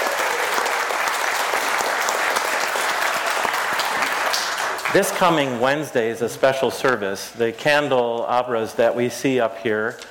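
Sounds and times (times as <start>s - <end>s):
audience applause: 0.0s - 5.6s
speech: 4.9s - 10.0s.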